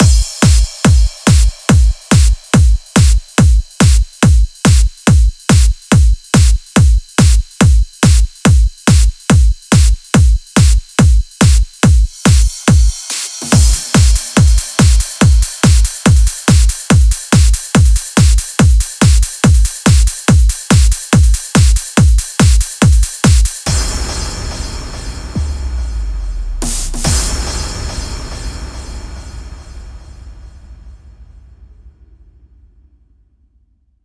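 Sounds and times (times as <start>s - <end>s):
drum mix at 142 BPM: 0.0s - 24.4s, 26.6s - 27.3s.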